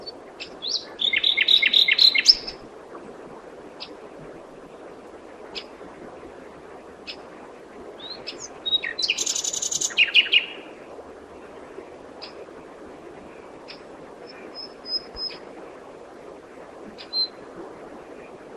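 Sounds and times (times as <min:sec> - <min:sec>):
common nightingale song: 0:00.4 - 0:02.6, 0:08.0 - 0:10.6.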